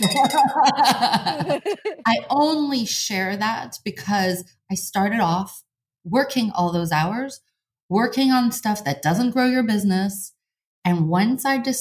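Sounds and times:
sales bell being rung: 0.0 - 1.2
laughter: 0.0 - 2.1
speech: 0.0 - 11.7.

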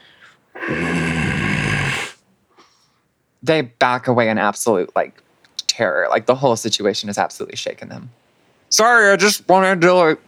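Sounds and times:
person imitating a growl: 0.6 - 2.2
speech: 3.5 - 5.2, 5.8 - 10.2.

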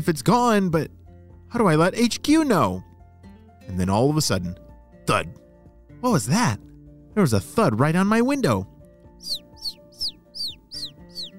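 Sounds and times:
speech: 0.0 - 2.9, 3.7 - 5.4, 6.0 - 9.4
bird chirping at a window: 9.2 - 11.3.

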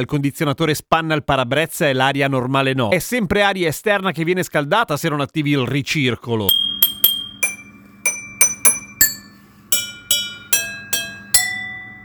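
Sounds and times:
speech: 0.0 - 6.8
jingle played on chemistry lab glassware: 6.5 - 12.0.

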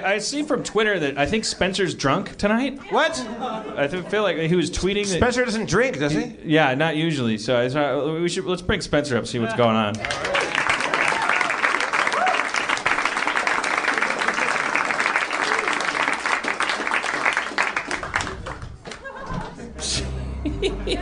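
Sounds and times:
speech: 0.0 - 10.4
scattered laughter: 3.2 - 4.1, 18.8 - 21.0
audience applause: 10.0 - 19.2.

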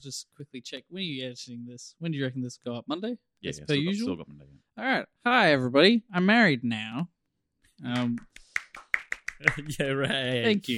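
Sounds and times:
speech: 0.0 - 7.2, 7.8 - 8.4, 9.4 - 10.7
two people clapping: 7.9 - 9.9.

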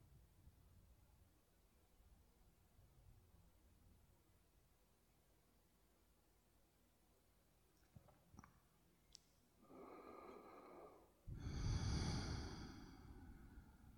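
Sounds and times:
slow deep breathing: 9.6 - 13.9.

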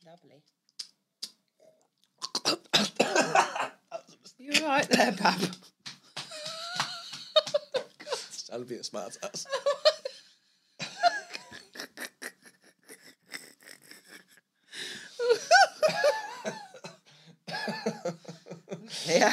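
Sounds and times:
speech: 0.2 - 0.7, 4.6 - 5.6, 8.6 - 9.8
person coughing after accidentally inhaling wine: 2.4 - 4.1, 10.8 - 12.0, 15.2 - 19.3
laughter: 6.3 - 8.4, 9.2 - 10.2, 10.8 - 13.2, 15.2 - 16.8, 17.5 - 19.3.

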